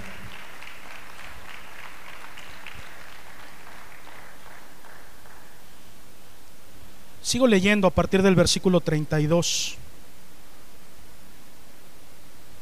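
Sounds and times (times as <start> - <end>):
audience applause: 0.0 - 5.7
speech: 7.3 - 9.8.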